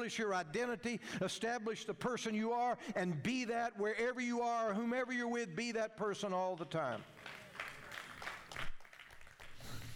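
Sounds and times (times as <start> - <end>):
speech: 0.0 - 7.4
weak scattered hand claps from a small audience: 7.0 - 9.9.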